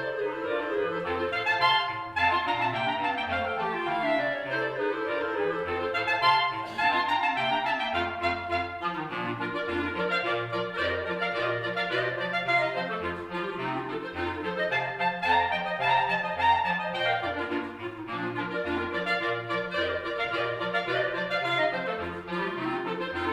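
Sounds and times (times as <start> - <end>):
polka played on clarinets: 0.0 - 23.3.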